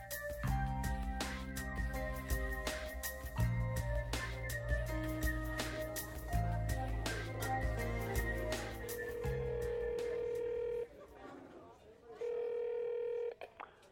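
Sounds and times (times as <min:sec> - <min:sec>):
music: 0:00.0 - 0:10.5
electronic telephone ringing: 0:08.7 - 0:10.9, 0:12.2 - 0:13.4.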